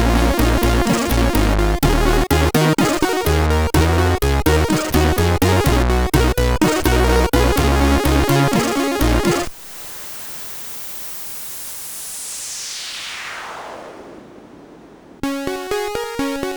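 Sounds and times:
MOS6581R3 chiptune music: 0:00.0 - 0:09.5, 0:15.2 - 0:16.5.

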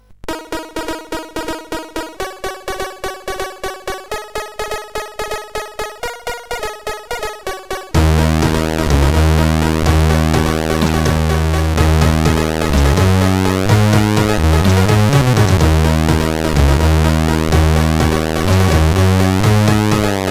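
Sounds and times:
calm intro on SID CSG8580R5 chip: 0:00.3 - 0:20.2.

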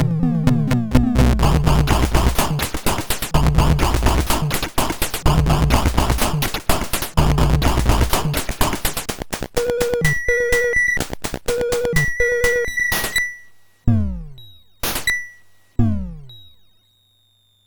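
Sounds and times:
drum from MOS6581R4 sound chip: 0:00.0 - 0:13.3, 0:13.9 - 0:15.2.

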